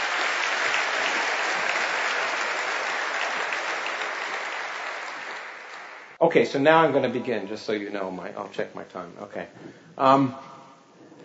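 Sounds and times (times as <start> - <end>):
audience applause: 0.0 - 6.2
speech: 6.2 - 10.5.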